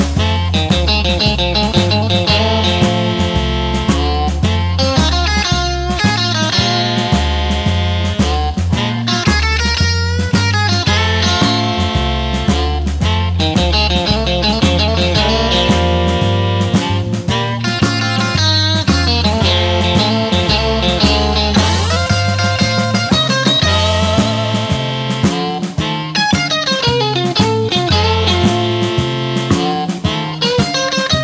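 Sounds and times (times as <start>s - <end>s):
blues band bass: 0.0s - 31.2s
blues band drums: 0.0s - 31.2s
blues band guitar: 0.0s - 31.2s
blues band harp: 0.0s - 31.2s
blues band sax: 0.0s - 31.2s
blues band voice: 19.6s - 26.0s.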